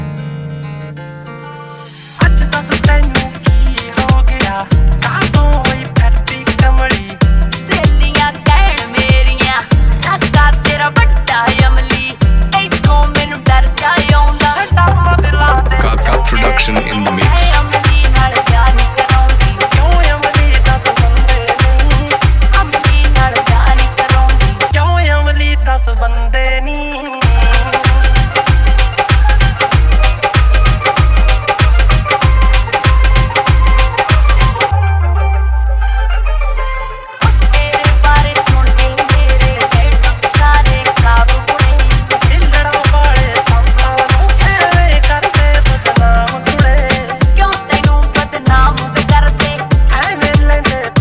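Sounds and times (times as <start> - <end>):
dhol remix music: 1.9 - 25.9, 27.2 - 50.9.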